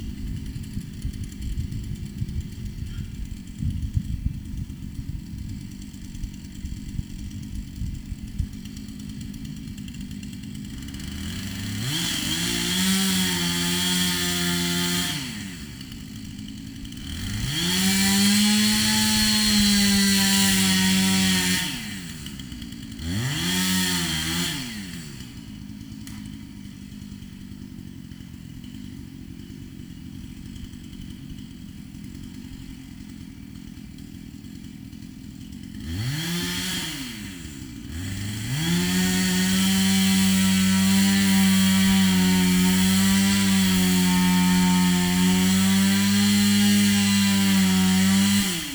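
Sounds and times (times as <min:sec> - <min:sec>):
loud chainsaw: 0:00.0 - 0:48.7.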